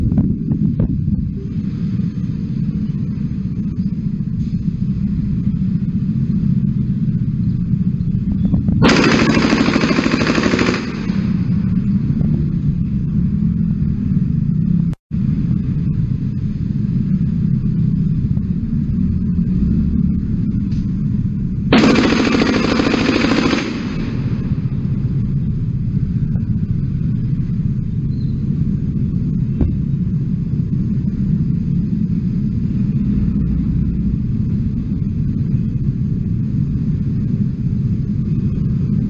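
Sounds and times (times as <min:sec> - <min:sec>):
steady low rumble: 0:00.0 - 0:39.0
machine gun firing bursts: 0:08.8 - 0:11.7, 0:21.7 - 0:24.8.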